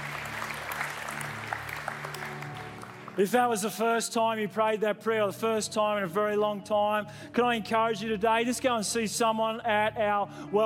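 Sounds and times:
church congregation applauding during a Thanksgiving Day service: 0.0s - 4.0s
speech: 3.2s - 10.6s.

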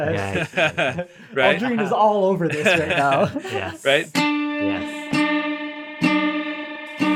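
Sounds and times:
laughter: 0.0s - 4.1s
speech: 0.0s - 5.0s
distorted electric guitar note with a bent string: 4.1s - 7.1s.

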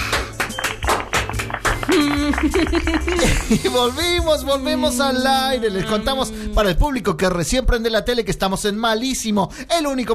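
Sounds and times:
studio audience applause: 0.0s - 5.5s
laughter: 1.8s - 6.6s
speech: 1.9s - 10.1s
sustained voice-like tone: 3.9s - 7.0s.

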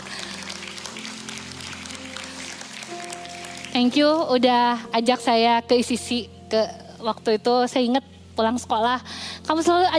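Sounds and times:
audience applause: 0.0s - 3.7s
speech: 3.8s - 9.9s.

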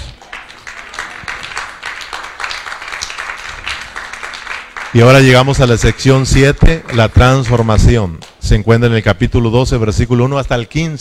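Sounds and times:
audience applause: 0.1s - 8.4s
speech: 5.0s - 11.0s.

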